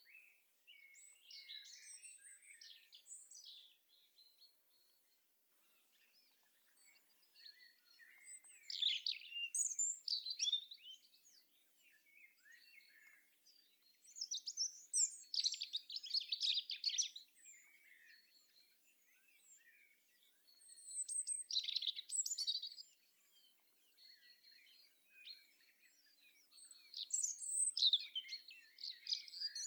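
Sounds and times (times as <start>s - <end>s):
European robin singing: 0.0s - 4.9s, 5.7s - 29.6s.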